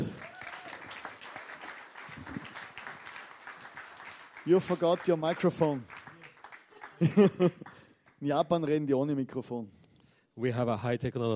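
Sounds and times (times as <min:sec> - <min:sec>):
audience applause: 0:00.0 - 0:08.3
speech: 0:04.5 - 0:05.9, 0:07.0 - 0:09.8, 0:10.4 - 0:11.3
laughter: 0:06.7 - 0:07.9.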